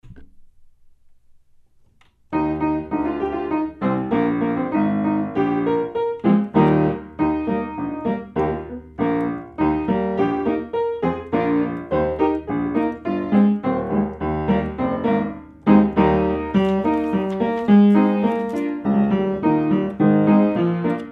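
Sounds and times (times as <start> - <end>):
piano: 2.3 - 21.0.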